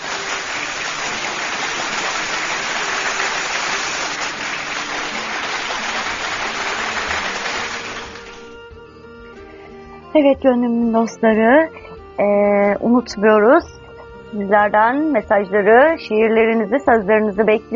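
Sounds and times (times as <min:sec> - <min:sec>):
audience applause: 0:00.0 - 0:08.6
speech: 0:10.2 - 0:17.7.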